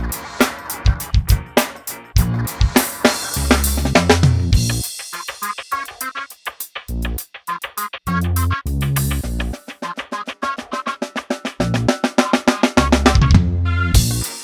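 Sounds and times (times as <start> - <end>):
funk drumming: 0.0 - 14.4.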